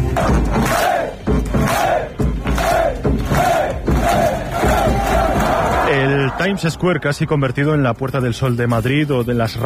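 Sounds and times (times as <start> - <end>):
crowd of football fans cheering: 0.2 - 7.7
speech: 6.5 - 9.6.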